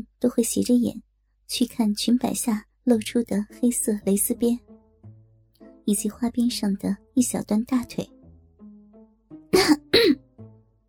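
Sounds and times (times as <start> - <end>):
speech: 0.0 - 4.6, 5.8 - 8.1
woman coughing: 9.6 - 10.2.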